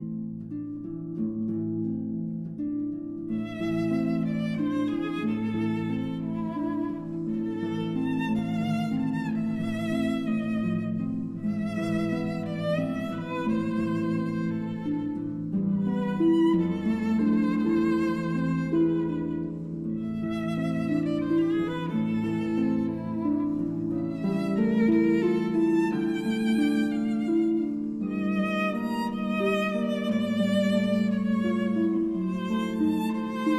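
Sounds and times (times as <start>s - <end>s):
berceuse for violin and harp: 0.0s - 33.5s.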